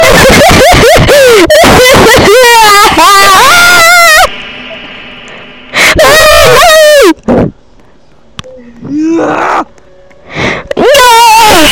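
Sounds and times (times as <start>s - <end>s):
very loud laughing: 0.0s - 3.4s
screaming: 0.0s - 4.3s, 5.7s - 7.2s, 8.8s - 9.7s, 10.8s - 11.7s.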